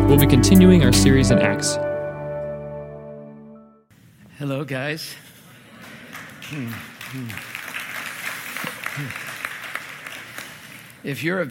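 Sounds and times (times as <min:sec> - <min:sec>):
speech: 0:00.1 - 0:01.9, 0:04.4 - 0:05.3, 0:06.5 - 0:07.5, 0:09.0 - 0:09.2, 0:11.0 - 0:11.4
crowd applauding: 0:05.8 - 0:11.0.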